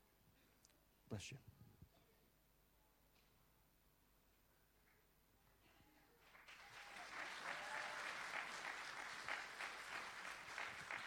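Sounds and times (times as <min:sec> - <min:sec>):
speech: 0:01.1 - 0:01.6
audience applause: 0:06.2 - 0:11.0.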